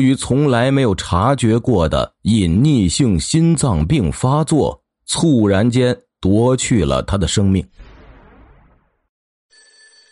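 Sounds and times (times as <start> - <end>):
speech: 0.0 - 7.9
telephone ringing: 9.5 - 10.0.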